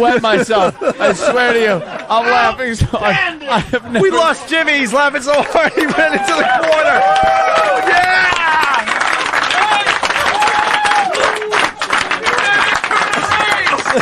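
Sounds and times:
speech: 0:00.0 - 0:08.1
laughter: 0:00.0 - 0:09.0, 0:09.6 - 0:13.9
thunderous round of applause: 0:03.8 - 0:13.9.

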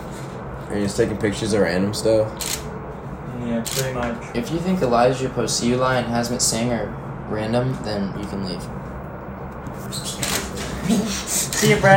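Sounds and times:
speech: 0:00.7 - 0:02.7, 0:03.4 - 0:08.8, 0:09.9 - 0:10.2, 0:10.9 - 0:11.9
door opening: 0:09.9 - 0:11.9.

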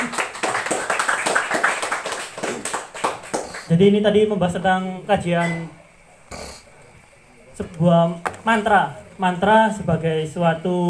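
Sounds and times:
audience clapping: 0:00.0 - 0:03.7
speech: 0:03.7 - 0:05.8, 0:07.6 - 0:10.8.

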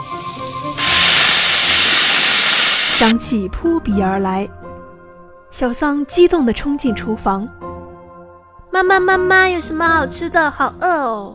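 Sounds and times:
food stir-frying in a hot wok: 0:00.0 - 0:03.2
speech: 0:03.0 - 0:04.6, 0:05.6 - 0:07.7, 0:08.7 - 0:11.3.

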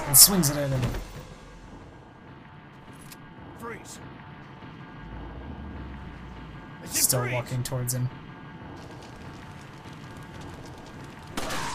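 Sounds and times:
low rumble: 0:00.0 - 0:11.7
speech: 0:00.1 - 0:01.1, 0:03.7 - 0:04.2, 0:06.8 - 0:08.2
gunshot in a video game: 0:11.2 - 0:11.7.

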